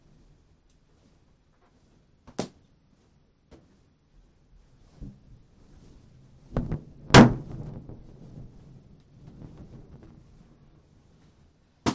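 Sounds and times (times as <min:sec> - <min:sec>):
balloons popped with a needle taped to a stick: 0:06.5 - 0:08.1.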